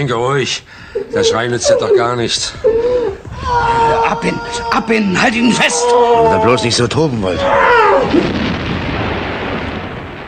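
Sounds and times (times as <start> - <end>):
speech: 0.0 - 8.4
broad rumbling roar: 1.1 - 9.6
aerial bombs exploding: 7.6 - 10.2.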